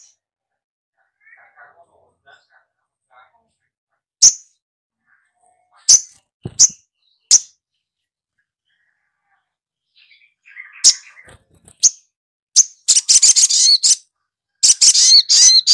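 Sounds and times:
soft bird twittering: 0:04.2 - 0:15.7.

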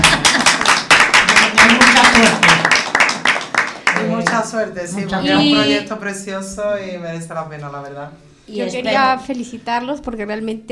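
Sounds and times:
crowd applauding: 0:00.0 - 0:04.6
speech: 0:04.6 - 0:10.7.

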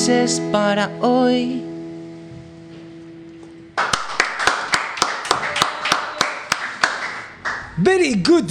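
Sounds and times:
speech: 0:00.2 - 0:01.7, 0:07.8 - 0:08.5
applause sound effect of a small group clapping: 0:03.7 - 0:07.8.

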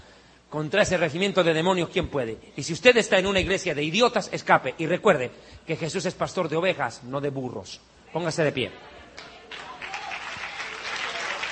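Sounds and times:
speech: 0:00.5 - 0:09.3
audience at an evangelical preacher's meeting applauding: 0:09.2 - 0:11.5.

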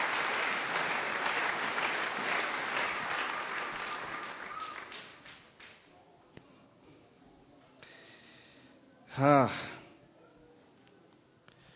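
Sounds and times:
congregation applause during a Sunday church service: 0:00.0 - 0:05.7
speech: 0:09.2 - 0:09.7.

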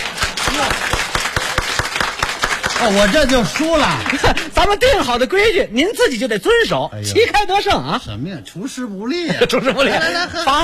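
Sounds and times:
audience applause during a Beijing comic dialogue show: 0:00.0 - 0:04.5
speech: 0:02.8 - 0:10.6
laughter: 0:03.2 - 0:04.6, 0:09.2 - 0:10.6.

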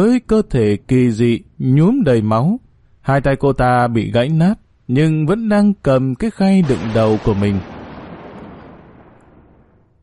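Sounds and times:
speech: 0:00.0 - 0:07.7
thunderclap: 0:06.6 - 0:10.0.

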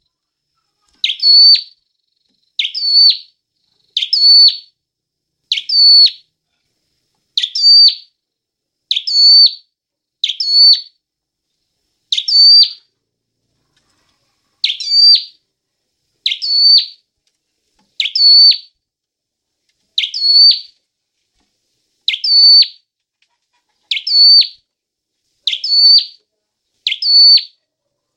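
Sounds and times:
Hill prinia singing whistled phrases: 0:01.0 - 0:01.8, 0:02.6 - 0:03.3, 0:04.0 - 0:04.7, 0:05.5 - 0:06.2, 0:07.4 - 0:08.1, 0:08.9 - 0:09.6, 0:10.2 - 0:10.9, 0:12.1 - 0:12.8, 0:14.6 - 0:15.4, 0:16.2 - 0:17.0, 0:18.0 - 0:18.7, 0:20.0 - 0:20.7, 0:22.1 - 0:22.8, 0:23.9 - 0:24.6, 0:25.5 - 0:26.2, 0:26.8 - 0:27.6.

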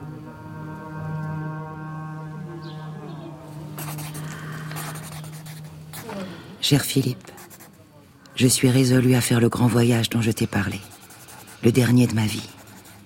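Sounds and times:
low musical drone: 0:00.0 - 0:06.7
pen scratching on paper writing a letter by hand: 0:03.8 - 0:06.2, 0:07.0 - 0:07.8, 0:10.5 - 0:13.0
speech: 0:06.6 - 0:07.3, 0:08.4 - 0:10.9, 0:11.6 - 0:12.6.

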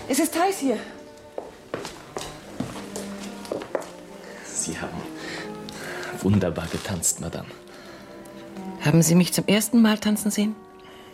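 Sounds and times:
speech: 0:00.1 - 0:01.0, 0:06.2 - 0:07.8, 0:08.8 - 0:10.7
footsteps of people walking: 0:01.1 - 0:04.2.

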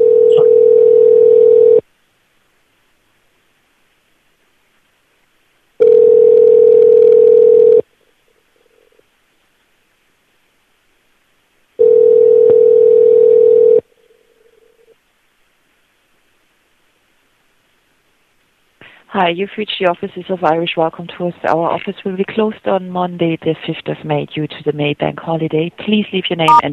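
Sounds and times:
telephone tone during a call transfer: 0:00.0 - 0:01.8, 0:05.8 - 0:07.8, 0:11.8 - 0:14.9
speech: 0:19.2 - 0:26.7.

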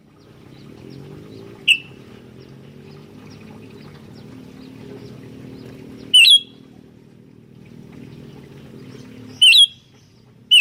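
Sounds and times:
Sooty-headed bulbul loud piercing chirps: 0:00.5 - 0:02.6, 0:05.6 - 0:06.7, 0:08.1 - 0:10.6.

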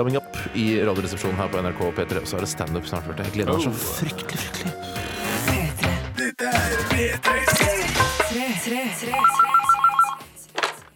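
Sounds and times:
speech: 0:00.0 - 0:04.8, 0:07.0 - 0:07.7
busy music: 0:00.0 - 0:10.9
telephone ringtone for a call into a radio show: 0:09.1 - 0:10.4.

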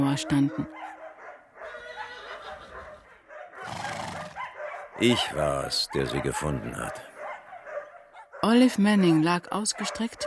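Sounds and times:
speech: 0:00.0 - 0:01.0, 0:05.0 - 0:07.1, 0:08.4 - 0:10.2
horse neighing: 0:01.6 - 0:03.0, 0:03.6 - 0:04.4.

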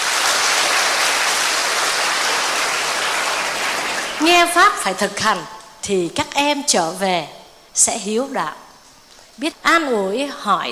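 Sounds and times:
audience applause: 0:00.0 - 0:04.6
speech: 0:04.2 - 0:08.6, 0:09.4 - 0:10.7.

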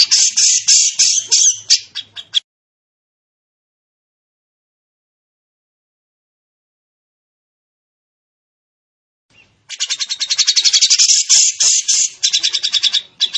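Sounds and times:
training bird song with rapid high rattling notes and buzzy trills: 0:00.0 - 0:02.4, 0:09.3 - 0:13.3.

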